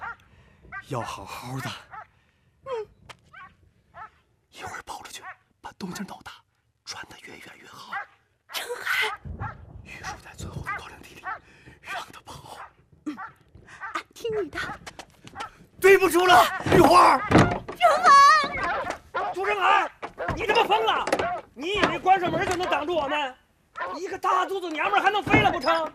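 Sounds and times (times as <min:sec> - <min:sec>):
speech: 0:00.9 - 0:01.9, 0:16.0 - 0:17.4, 0:20.6 - 0:25.9
door being shut: 0:16.6 - 0:19.3, 0:20.0 - 0:23.1, 0:25.1 - 0:25.9.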